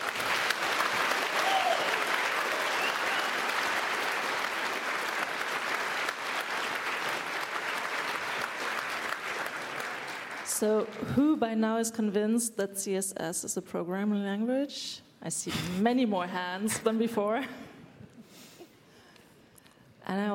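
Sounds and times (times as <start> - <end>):
audience applause: 0.0 - 11.0
speech: 10.6 - 17.6, 20.1 - 20.3.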